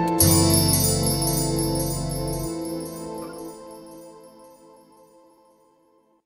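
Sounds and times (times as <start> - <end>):
instrumental piano music: 0.2 - 4.6.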